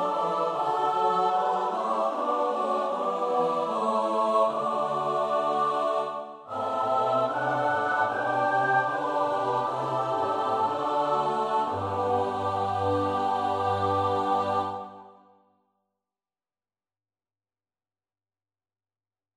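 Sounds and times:
SATB choir part singing: 0.0s - 15.3s.

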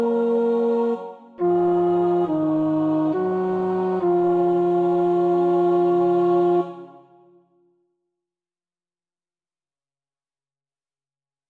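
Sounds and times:
tenor practising a choir part: 0.0s - 7.1s.

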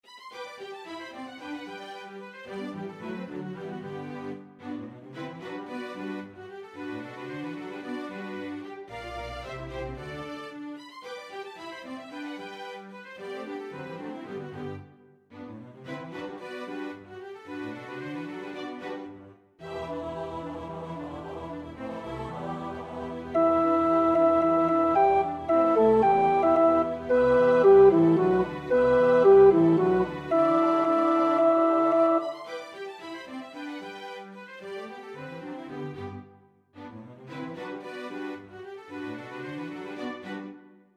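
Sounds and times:
tenor singing: 19.7s - 32.6s.

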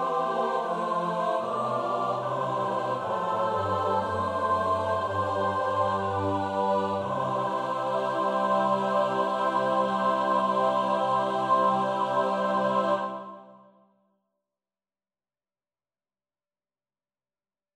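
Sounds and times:
soprano alto tenor bass voices: 0.0s - 13.3s.

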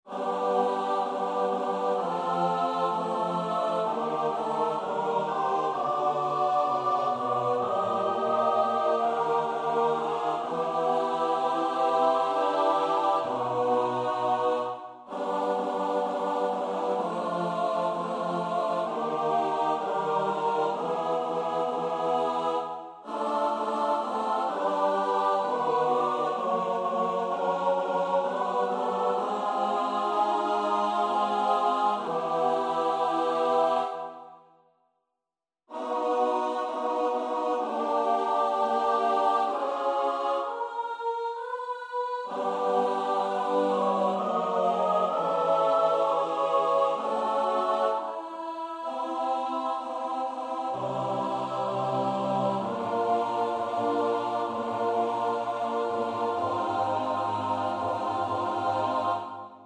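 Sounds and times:
SATB choir part practice: 0.0s - 34.6s, 35.7s - 59.6s.

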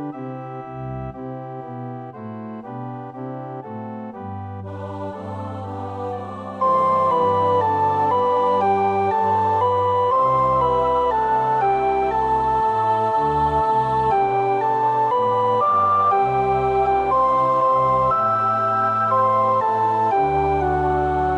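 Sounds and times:
soprano singing: 4.6s - 21.3s.

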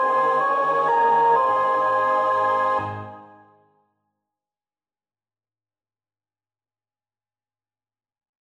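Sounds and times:
soprano singing: 0.0s - 3.5s.

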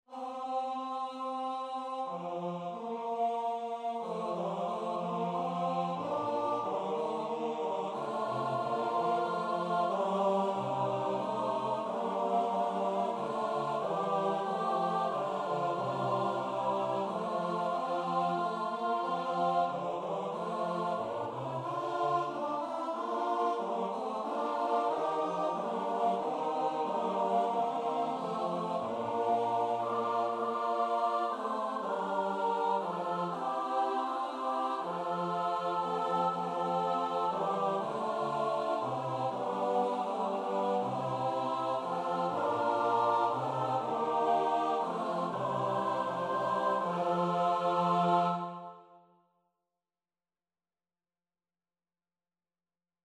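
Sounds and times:
SATB choir part practice: 0.1s - 49.0s.

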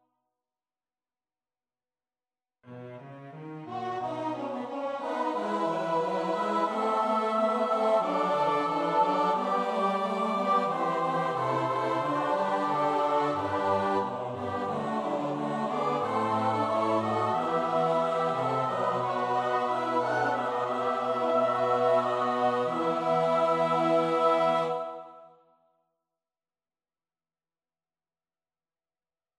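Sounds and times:
SATB choir part practice: 3.6s - 25.4s.

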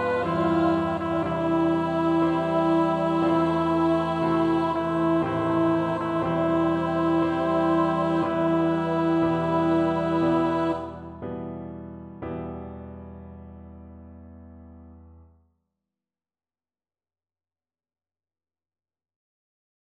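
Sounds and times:
bass choir part practice: 0.0s - 11.6s.

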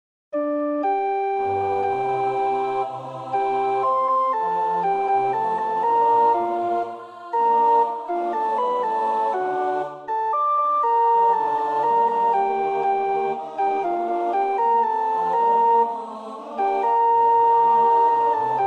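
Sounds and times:
soprano practising a choir part: 1.4s - 18.6s.

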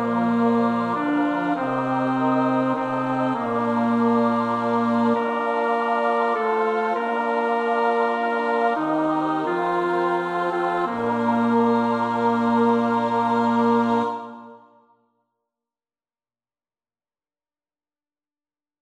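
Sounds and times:
bass: 0.0s - 14.2s.

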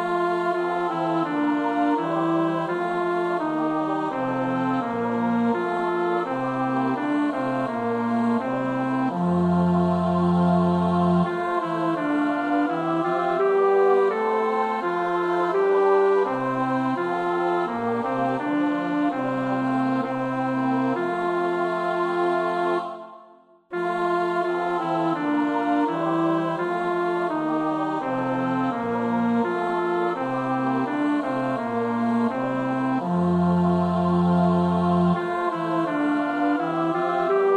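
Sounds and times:
bass choir part practice: 0.2s - 15.0s, 16.2s - 37.5s.

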